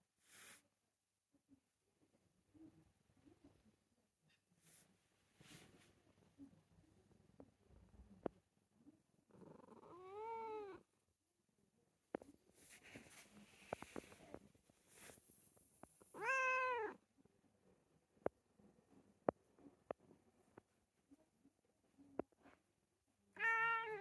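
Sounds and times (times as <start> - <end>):
quiet shuffling: 4.6 - 6.1, 12.2 - 16.1
cat meowing insistently in the morning: 9.6 - 10.8, 16.1 - 17.0, 23.3 - 23.9.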